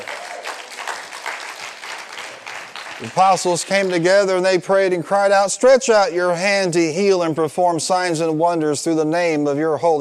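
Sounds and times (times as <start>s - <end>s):
audience clapping hands: 0.0s - 4.4s
speech: 3.0s - 10.0s.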